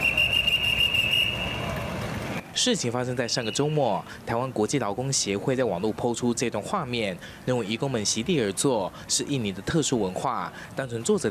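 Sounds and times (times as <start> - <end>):
police officer blowing whistle: 0.0 - 1.8, 3.4 - 3.8
speech: 2.6 - 11.2.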